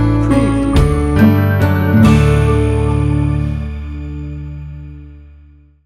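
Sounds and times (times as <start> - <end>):
floating lazy day music sting bumper: 0.2 - 3.6.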